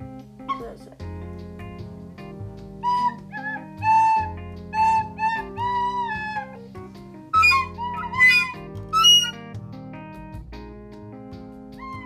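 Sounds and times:
shrill screeching flute notes: 2.8s - 6.6s, 7.3s - 9.4s.

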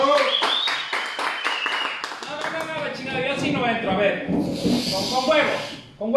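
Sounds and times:
applause: 0.0s - 3.0s
speech: 3.8s - 6.1s.

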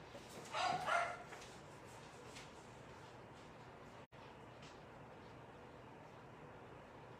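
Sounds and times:
two dogs barking at each other: 0.5s - 1.4s.

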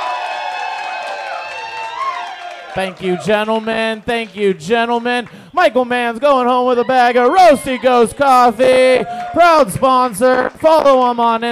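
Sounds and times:
audience cheering: 0.0s - 4.5s, 6.5s - 10.1s
audience applause: 0.0s - 4.6s, 9.0s - 9.6s
speech: 2.8s - 11.4s.

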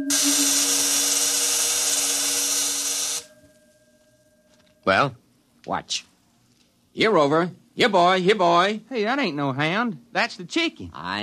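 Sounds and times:
speech: 0.0s - 0.3s, 4.8s - 6.1s, 7.0s - 11.2s
vibrating energy field electric buzz: 0.0s - 3.6s.

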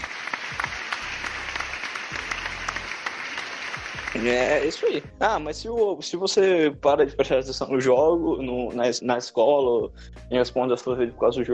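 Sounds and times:
applause: 0.0s - 5.1s
speech: 4.2s - 11.5s.

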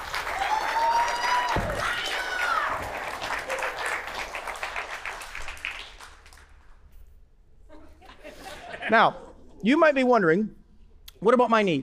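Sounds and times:
audience applause: 0.0s - 6.6s
laughter: 7.7s - 9.6s
speech: 8.9s - 10.6s, 11.2s - 11.8s.

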